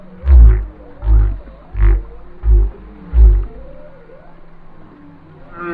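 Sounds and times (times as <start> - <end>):
whale grunting: 0.2 - 3.8.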